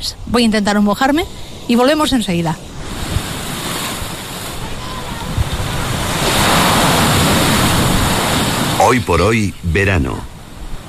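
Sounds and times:
speech: 0:00.0 - 0:02.7, 0:08.9 - 0:10.3
ocean waves breaking on the shore: 0:00.7 - 0:10.8.

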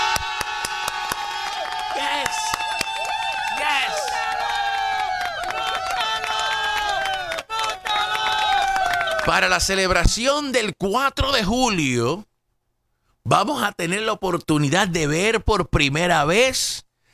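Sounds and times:
crowd applause: 0:00.0 - 0:09.5
speech: 0:09.3 - 0:12.3, 0:13.3 - 0:16.9.

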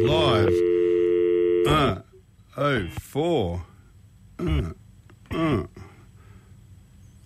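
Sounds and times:
speech: 0:00.0 - 0:00.7, 0:02.6 - 0:03.7, 0:04.4 - 0:05.9
telephone dialing tones: 0:00.0 - 0:01.7.

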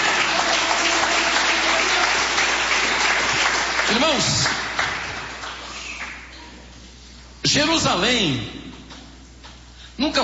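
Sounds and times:
audience clapping: 0:00.0 - 0:06.3
speech: 0:03.9 - 0:04.6, 0:07.5 - 0:08.6, 0:10.0 - 0:10.2.

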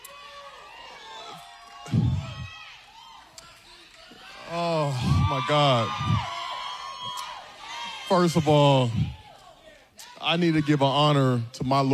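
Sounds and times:
crowd cheering and shouting: 0:00.0 - 0:11.5
applause: 0:00.2 - 0:07.2
speech: 0:04.5 - 0:06.3, 0:08.1 - 0:09.2, 0:10.2 - 0:11.9.

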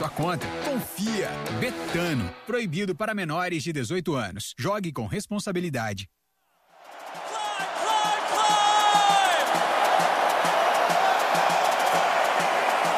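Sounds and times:
England fans cheering in stadium in Atlanta: 0:00.0 - 0:01.4, 0:06.7 - 0:12.9
speech: 0:00.0 - 0:06.2.

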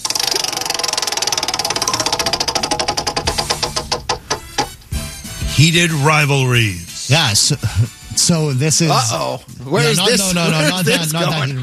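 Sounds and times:
spinning prize wheel clicking: 0:00.0 - 0:04.8
speech: 0:05.6 - 0:11.6
laughter: 0:07.4 - 0:08.0, 0:09.8 - 0:11.6.

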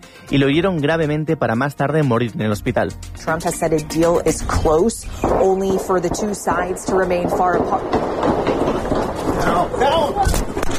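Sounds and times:
speech: 0:00.3 - 0:08.9
rumbling noise: 0:04.0 - 0:10.7
gunshots during live news broadcast: 0:04.5 - 0:10.7.

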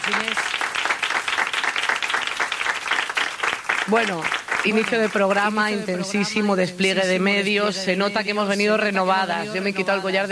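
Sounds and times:
audience applause: 0:00.0 - 0:05.8
speech: 0:00.1 - 0:00.7, 0:03.9 - 0:10.3.

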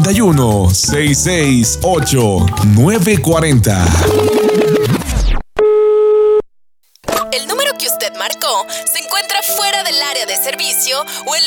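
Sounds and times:
speech: 0:00.1 - 0:04.8, 0:08.6 - 0:11.4
falling electronic chirps: 0:03.8 - 0:05.8
telephone busy tone from an off-hook handset: 0:04.0 - 0:06.4.

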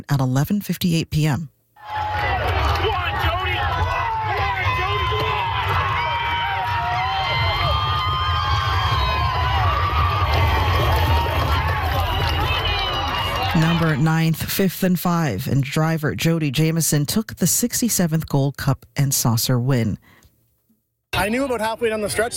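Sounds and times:
speech: 0:00.0 - 0:02.0, 0:13.5 - 0:20.2, 0:21.2 - 0:22.3
crowd cheering at a horse race: 0:01.8 - 0:14.4.

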